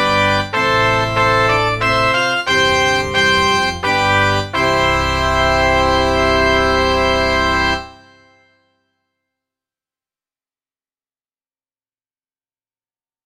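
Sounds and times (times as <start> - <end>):
trumpet duet: 0.0 - 8.5.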